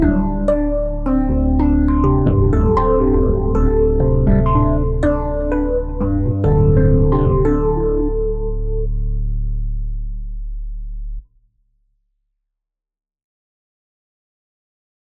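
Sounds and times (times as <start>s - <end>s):
electric keyboard: 0.0s - 9.8s.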